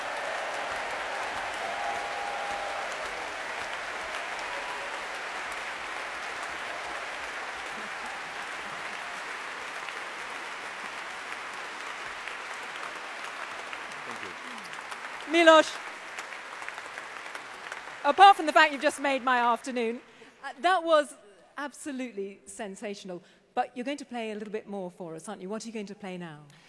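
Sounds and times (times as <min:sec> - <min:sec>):
large audience cheering and applauding: 0:00.0 - 0:20.2
speech: 0:15.3 - 0:15.8, 0:18.1 - 0:26.6.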